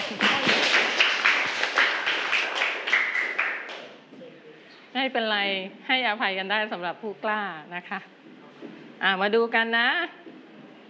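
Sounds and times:
children clapping for a classmate: 0.0 - 4.0
speech: 5.0 - 8.2, 9.0 - 10.2.

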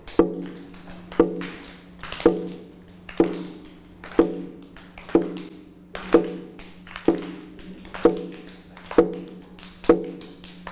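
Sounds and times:
drum struck in a slow steady beat: 0.0 - 0.6, 1.2 - 1.5, 3.2 - 3.6, 4.2 - 8.4, 9.0 - 10.2.

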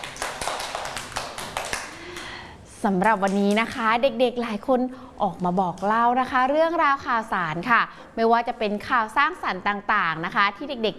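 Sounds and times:
light clapping for a child at a children's news session: 0.0 - 2.4
speech: 2.8 - 10.9.

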